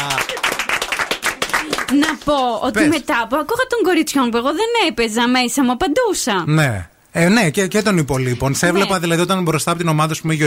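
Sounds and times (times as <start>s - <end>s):
audience applause: 0.0s - 2.5s
speech: 1.9s - 10.4s.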